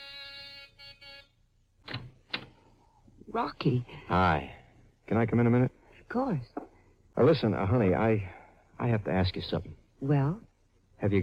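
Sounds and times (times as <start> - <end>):
buzzing doorbell: 0.0 - 1.4
speech: 3.3 - 6.6, 7.2 - 11.2.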